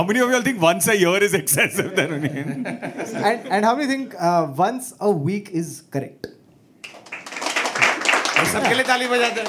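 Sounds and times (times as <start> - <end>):
speech: 0.0 - 6.4, 8.4 - 9.4
laughter: 1.6 - 4.0
gentle audience applause: 6.8 - 9.4.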